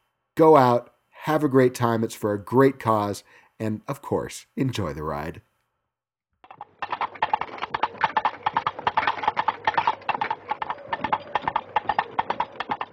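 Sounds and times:
speech: 0:00.4 - 0:05.5
horse hooves clip-clopping in a trotting rhythm: 0:06.5 - 0:12.9.

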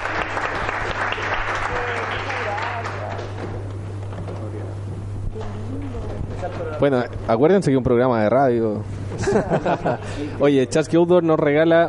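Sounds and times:
audience applause: 0:00.0 - 0:03.4
speech: 0:06.8 - 0:11.8
laughter: 0:09.1 - 0:10.4.

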